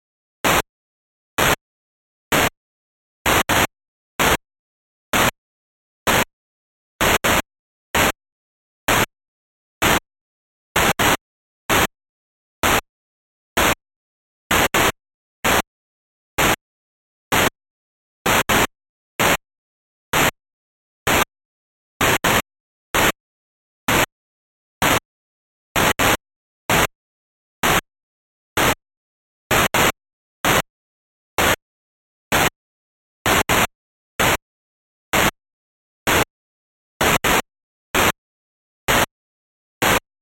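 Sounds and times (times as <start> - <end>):
noise: 0.4 - 0.7, 1.4 - 1.6, 2.3 - 2.6, 3.2 - 4.4, 5.1 - 5.4, 6.0 - 6.4, 7.0 - 8.2, 8.8 - 9.1, 9.8 - 10.1, 10.7 - 12.0, 12.6 - 12.9, 13.6 - 13.8, 14.5 - 15.7, 16.4 - 16.6, 17.3 - 17.6, 18.2 - 19.4, 20.1 - 20.4, 21.0 - 21.3, 22.0 - 23.2, 23.8 - 24.1, 24.8 - 25.1, 25.7 - 27.0, 27.6 - 27.9, 28.6 - 28.8, 29.5 - 30.7, 31.4 - 31.6, 32.3 - 32.6, 33.2 - 34.4, 35.1 - 35.4, 36.1 - 36.3, 37.0 - 38.2, 38.9 - 39.2, 39.8 - 40.1.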